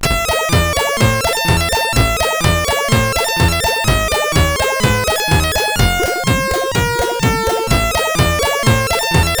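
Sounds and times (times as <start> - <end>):
SID CSG8580R5 chip music: 0.0 - 9.3.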